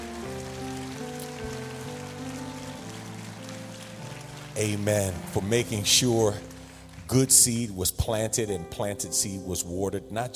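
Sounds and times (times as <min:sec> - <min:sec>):
audience applauding volunteers: 0:00.0 - 0:07.9
speech: 0:04.6 - 0:06.5, 0:07.1 - 0:10.3.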